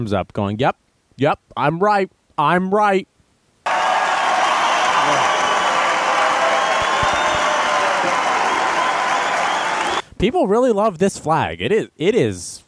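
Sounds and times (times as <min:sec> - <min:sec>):
speech: 0:00.0 - 0:03.1, 0:10.2 - 0:12.6
crowd cheering: 0:03.6 - 0:10.1.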